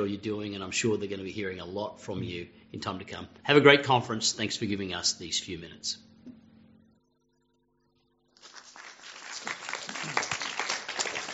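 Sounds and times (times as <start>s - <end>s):
speech: 0.0s - 6.1s
audience applause: 8.4s - 11.3s.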